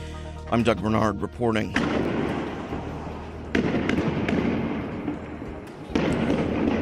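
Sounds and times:
speech: 0.5s - 2.1s
Israeli police tear gas launcher bangs in Bethlehem: 1.7s - 6.8s
crowd noise of Palestinian protesters: 2.2s - 6.8s.

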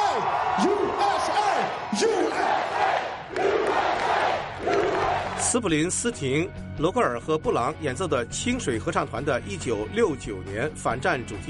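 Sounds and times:
audience chanting: 0.0s - 5.4s
speech: 0.6s - 2.2s, 5.5s - 11.4s.

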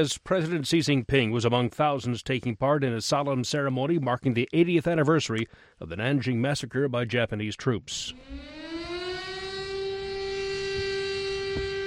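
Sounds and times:
speech: 0.0s - 8.6s
siren signalling a moment of silence: 8.0s - 11.8s.

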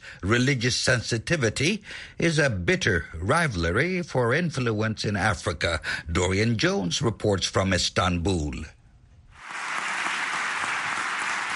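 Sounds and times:
speech: 0.1s - 8.8s
parliamentary deputies applauding: 9.4s - 11.5s.

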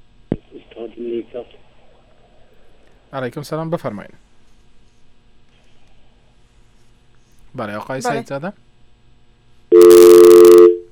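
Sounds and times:
speech: 1.0s - 1.7s, 3.1s - 4.2s, 7.6s - 8.6s
telephone busy tone after a dropped call: 9.7s - 10.9s.

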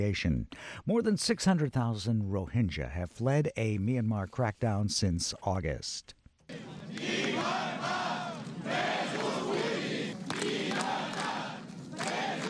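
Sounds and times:
speech: 0.0s - 7.6s
firefighters shouting slogans at a protest: 6.5s - 12.4s.

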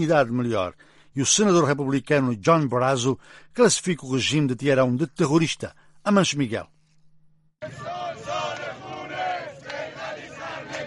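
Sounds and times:
speech: 0.0s - 6.8s, 7.6s - 8.0s
protesters chanting in the street in Tehran: 7.6s - 10.8s.

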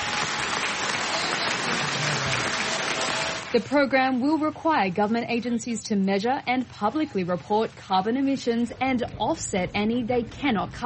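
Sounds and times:
applause in parliament: 0.0s - 3.7s
speech: 3.5s - 10.8s.

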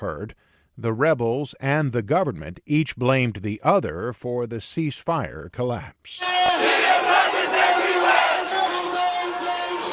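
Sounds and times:
speech: 0.0s - 6.6s
large protest crowd chanting and shouting: 6.2s - 9.9s.

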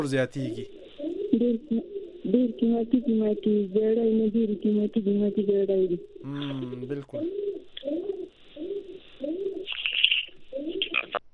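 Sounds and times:
speech: 0.0s - 0.8s, 1.4s - 8.0s
pigeons cooing: 0.0s - 11.1s.

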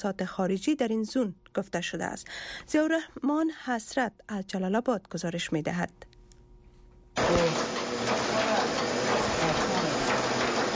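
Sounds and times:
speech: 0.0s - 6.1s
printing press running: 7.2s - 10.7s.

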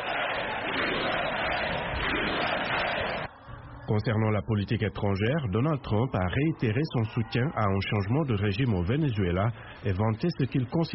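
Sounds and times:
crowd applauding and cheering in Congress: 0.0s - 3.3s
speech: 3.9s - 10.9s.

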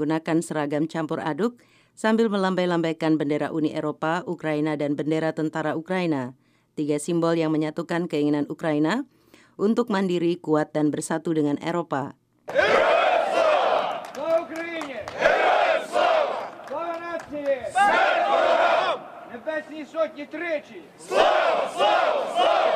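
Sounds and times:
speech: 0.0s - 12.8s, 19.6s - 22.7s
crowd shouting slogans at a rally: 12.5s - 22.7s.

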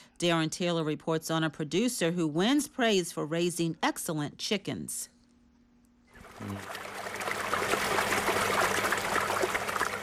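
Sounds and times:
speech: 0.2s - 5.2s, 6.4s - 6.9s
fresh spring water trickling and burbling: 6.2s - 10.0s.

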